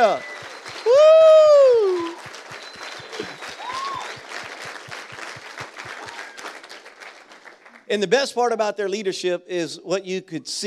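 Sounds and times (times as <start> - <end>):
speech: 0.0 - 1.1, 7.9 - 10.6
crowd applause: 0.0 - 7.9
high-pitched whoop: 0.8 - 2.3, 3.5 - 4.2.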